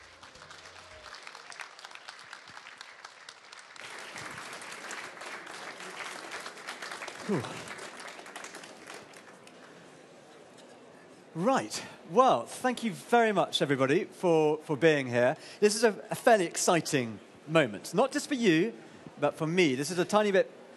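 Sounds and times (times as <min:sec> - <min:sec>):
audience applause welcoming a speaker at a travel writers' festival at Destinations in Olympia: 0:00.0 - 0:09.8
speech: 0:07.3 - 0:07.7, 0:11.4 - 0:20.6.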